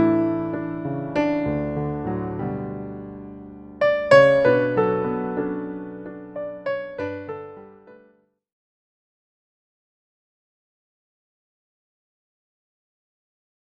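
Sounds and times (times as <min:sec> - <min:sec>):
jazz piano: 0:00.0 - 0:08.1.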